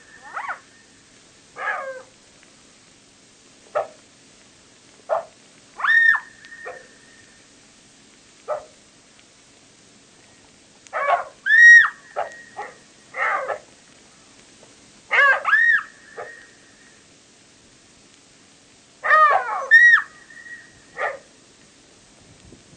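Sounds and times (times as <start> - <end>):
jackal calls: 0.1 - 0.7, 5.1 - 7.3, 10.9 - 13.7, 15.1 - 16.6, 19.0 - 21.3.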